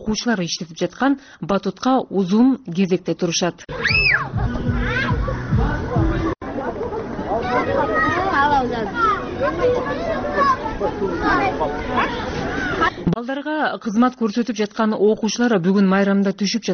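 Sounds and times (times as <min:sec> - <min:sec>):
speech: 0:00.1 - 0:03.9, 0:13.3 - 0:16.7
children and parents chattering and shouting at a village recreation park: 0:03.7 - 0:13.2.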